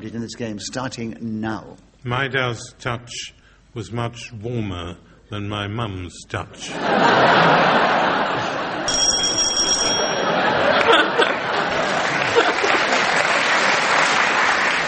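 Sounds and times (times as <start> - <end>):
speech: 0.0 - 8.6
laughter: 6.6 - 14.5
big round of applause: 10.8 - 14.8.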